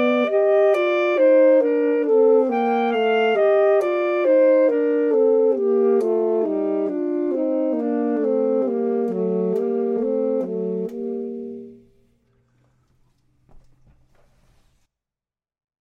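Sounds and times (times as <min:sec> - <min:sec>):
saxophone: 0:00.0 - 0:11.9
clarinet: 0:00.0 - 0:12.0.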